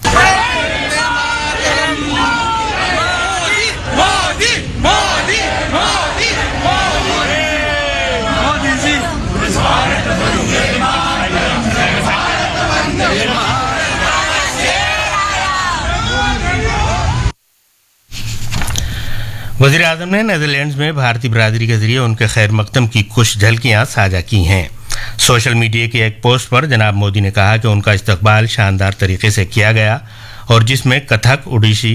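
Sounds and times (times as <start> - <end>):
large crowd chanting slogans: 0.0 - 17.3
speech: 19.6 - 31.9.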